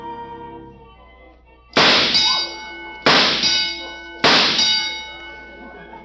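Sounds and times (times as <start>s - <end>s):
shooting gallery ducks clanging when hit: 1.8s - 5.1s
sustained ringing metallic tone: 1.8s - 6.0s.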